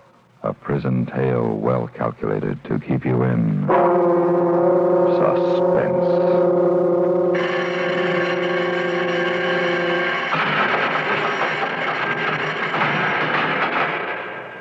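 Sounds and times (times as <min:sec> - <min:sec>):
speech: 0:00.4 - 0:04.4, 0:05.1 - 0:06.4
loud prison bell ringing: 0:07.3 - 0:14.5.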